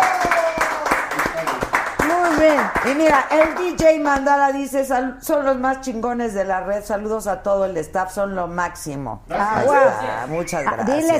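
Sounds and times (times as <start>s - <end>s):
applause: 0.0s - 4.2s
speech: 2.8s - 11.1s.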